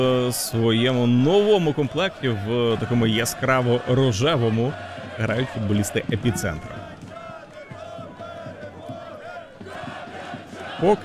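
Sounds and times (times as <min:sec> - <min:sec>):
speech: 0:00.0 - 0:06.8, 0:10.8 - 0:11.0
local football crowd cheering: 0:00.0 - 0:11.0.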